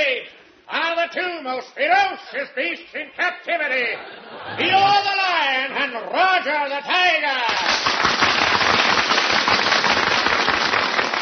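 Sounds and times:
speech: 0:01.1 - 0:07.9
large crowd clapping: 0:07.4 - 0:11.1.

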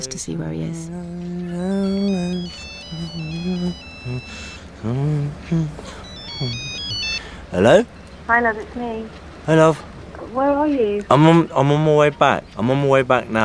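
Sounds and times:
speech: 0:00.0 - 0:06.7, 0:07.5 - 0:13.4
telephone ringing: 0:01.8 - 0:04.8, 0:06.0 - 0:07.5.

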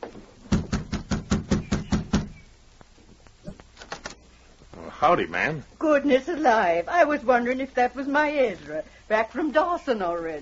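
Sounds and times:
knocking on a cabin door: 0:00.5 - 0:02.4
speech: 0:05.0 - 0:10.4.

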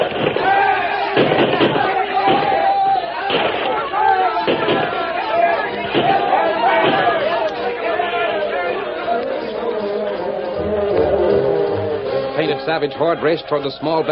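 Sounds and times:
volley of gunshots in a radio drama battle: 0:00.0 - 0:05.1, 0:05.8 - 0:07.4
shouting and crowd noise in a radio drama battle: 0:00.0 - 0:14.1
speech: 0:12.7 - 0:14.1.

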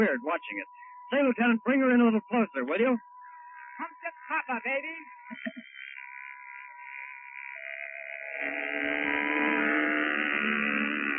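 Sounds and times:
speech: 0:00.0 - 0:03.1, 0:03.8 - 0:05.7, 0:08.4 - 0:09.5
radio-controlled model plane diving overhead: 0:06.0 - 0:11.1.

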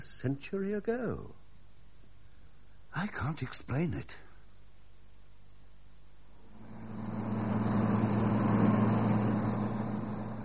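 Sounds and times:
speech: 0:00.0 - 0:01.4, 0:02.9 - 0:04.3
car engine driven fast: 0:06.4 - 0:10.4.

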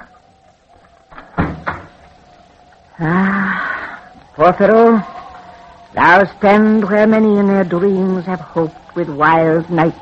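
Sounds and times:
door opening: 0:00.8 - 0:02.1
speech: 0:03.0 - 0:03.3, 0:04.4 - 0:05.1, 0:06.0 - 0:09.9.

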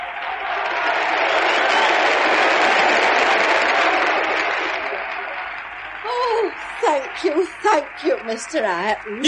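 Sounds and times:
audience applause: 0:00.0 - 0:09.2
speech: 0:07.2 - 0:09.2.

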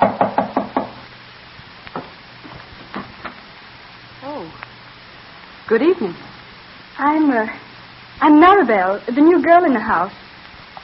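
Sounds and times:
knocks on a door: 0:00.0 - 0:01.0
speech: 0:05.7 - 0:06.3, 0:07.0 - 0:07.6, 0:08.2 - 0:10.2.

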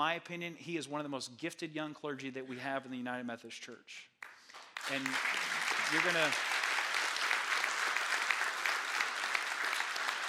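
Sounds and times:
speech: 0:00.0 - 0:06.5
audience clapping: 0:04.2 - 0:10.2.

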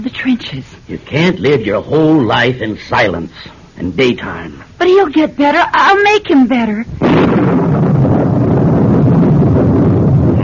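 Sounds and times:
speech: 0:00.0 - 0:07.8
storm wind: 0:06.9 - 0:10.4.

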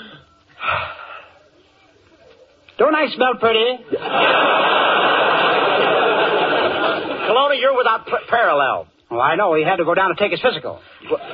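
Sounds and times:
deep breath taken on instruction during a comedy exercise routine: 0:00.0 - 0:01.5
speech: 0:02.8 - 0:04.8, 0:07.6 - 0:11.3
laughter: 0:03.9 - 0:08.3, 0:11.0 - 0:11.3.

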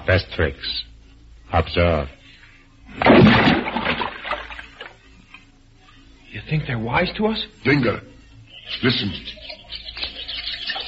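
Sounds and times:
speech: 0:00.1 - 0:00.9, 0:01.5 - 0:02.2, 0:03.0 - 0:03.7, 0:06.3 - 0:08.1, 0:08.7 - 0:09.5
rock splashing into a water hole: 0:03.0 - 0:05.0.

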